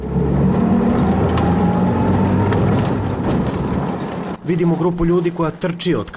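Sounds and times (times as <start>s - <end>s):
jeep engine accelerating: 0.0s - 4.4s
speech: 4.5s - 6.1s.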